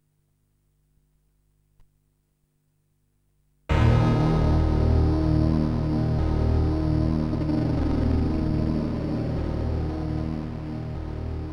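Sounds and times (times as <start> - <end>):
unusual fanfare: 3.7 - 11.5.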